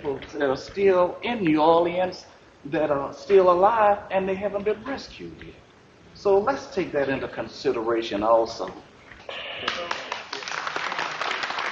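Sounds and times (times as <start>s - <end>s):
speech: 0.0s - 5.6s, 6.2s - 10.0s
town meeting crowd applause: 9.6s - 11.7s.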